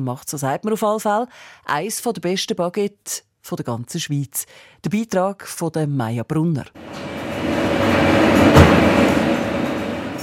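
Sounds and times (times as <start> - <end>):
speech: 0.0 - 7.9
bakery ventilation blowing loudly: 6.8 - 10.2.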